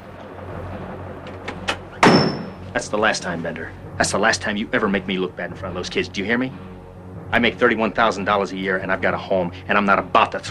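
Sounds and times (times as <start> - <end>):
low hum: 0.0 - 10.4
door slammed shut: 1.2 - 2.7
speech: 2.8 - 6.7, 7.3 - 10.4.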